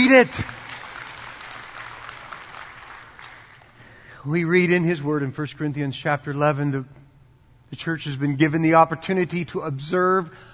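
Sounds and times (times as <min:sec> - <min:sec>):
audience clapping: 0:00.0 - 0:04.0
speech: 0:00.1 - 0:00.6, 0:04.2 - 0:07.0, 0:07.7 - 0:10.5.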